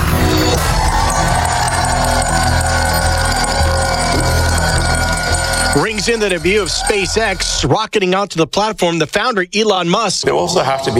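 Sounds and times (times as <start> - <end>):
NASDAQ opening bell: 0.9 - 6.3
speech: 5.8 - 10.9.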